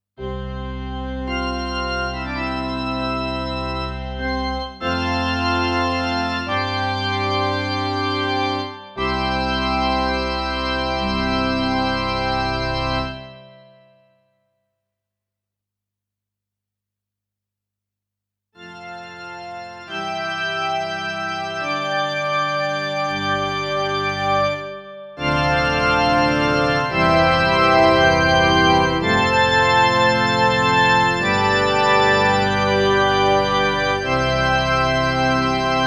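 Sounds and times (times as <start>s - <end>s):
church organ: 0.2s - 14.1s, 18.6s - 35.8s.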